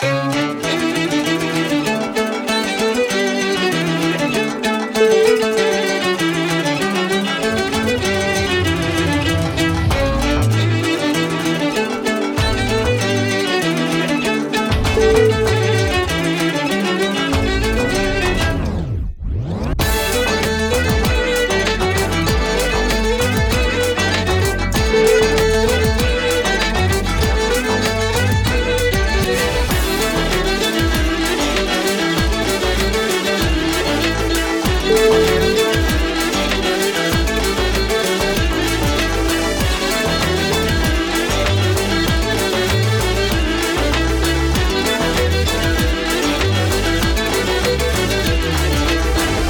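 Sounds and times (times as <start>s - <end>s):
modern Middle Eastern music: 0.0s - 49.4s.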